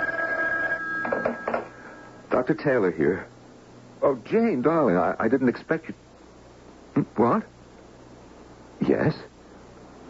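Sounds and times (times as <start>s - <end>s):
telephone ringing: 0.0s - 2.3s
speech: 2.3s - 3.3s, 4.0s - 6.0s, 7.0s - 7.5s, 8.8s - 9.3s.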